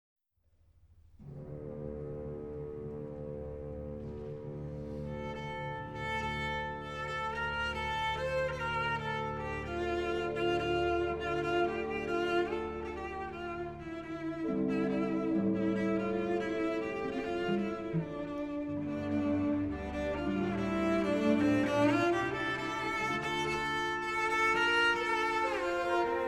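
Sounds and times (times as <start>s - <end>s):
cello concerto: 1.2s - 26.2s.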